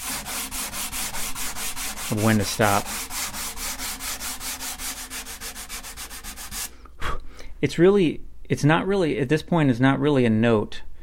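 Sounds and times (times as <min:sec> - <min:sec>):
sandpaper sanding wood being thinned for a guitar: 0:00.0 - 0:06.7
speech: 0:02.1 - 0:03.1, 0:07.6 - 0:10.8.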